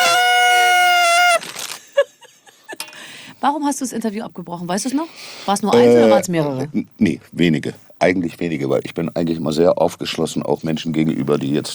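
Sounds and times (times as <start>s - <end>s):
horn toot sound effect: 0.0s - 1.4s
speech: 3.4s - 11.7s.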